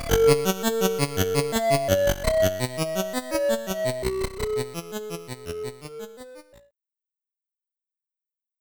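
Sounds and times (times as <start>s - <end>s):
SID chip music in stereo: 0.0s - 6.4s.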